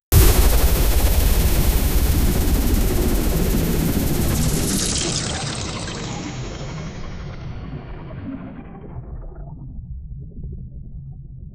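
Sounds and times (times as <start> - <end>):
children's rocket ship flying sounds: 0.1 - 8.3.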